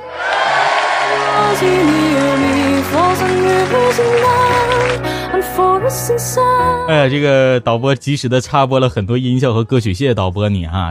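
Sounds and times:
applause: 0.2s - 5.2s
speech: 1.6s - 2.0s, 5.9s - 10.9s.

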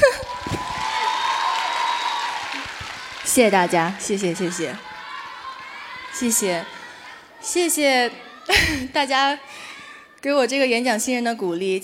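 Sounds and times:
audience applause: 0.0s - 7.1s
speech: 3.4s - 4.9s, 6.2s - 6.8s, 7.4s - 9.6s, 10.2s - 11.8s.

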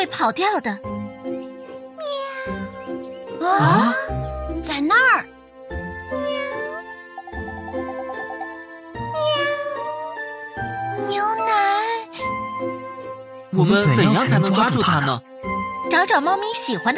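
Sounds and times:
speech: 0.0s - 0.9s, 3.4s - 5.4s, 13.6s - 15.3s, 15.9s - 16.9s
steady soft musical backing: 0.0s - 16.9s
frightened cat meowing: 2.0s - 2.9s, 6.1s - 7.0s, 9.0s - 10.3s
person exclaiming: 3.4s - 4.1s.

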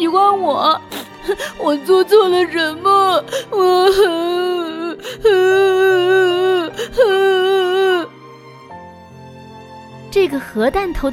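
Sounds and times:
speech: 0.0s - 8.0s, 10.1s - 11.1s
child wailing and sobbing: 0.0s - 8.1s.

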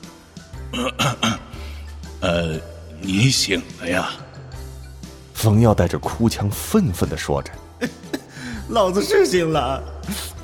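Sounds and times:
speech: 0.7s - 1.4s, 2.2s - 4.2s, 5.4s - 8.1s, 8.7s - 10.4s
throaty cough: 0.7s - 1.6s.

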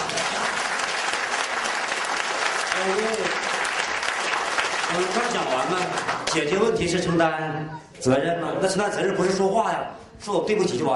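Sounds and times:
audience applause: 0.0s - 6.6s
speech: 4.9s - 10.9s.

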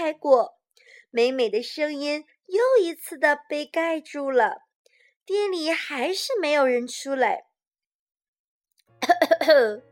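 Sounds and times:
speech: 0.0s - 4.6s, 5.3s - 7.5s, 9.0s - 9.9s
voice imitating a man in sunglasses coughing: 9.0s - 9.8s.

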